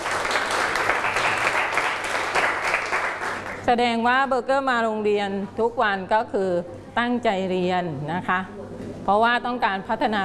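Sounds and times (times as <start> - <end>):
classroom applause: 0.0 - 3.6
speech: 3.7 - 10.2.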